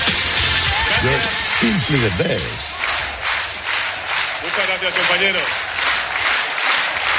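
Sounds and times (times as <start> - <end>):
crowd clapping at a political rally: 0.1 - 7.1
raised voice calling out: 1.0 - 2.8
speech: 1.2 - 2.9, 4.6 - 5.7.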